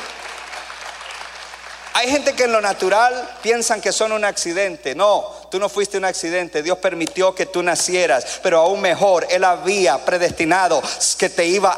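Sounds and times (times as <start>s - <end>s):
crowd applauding: 0.0s - 3.4s
speech: 2.0s - 11.7s.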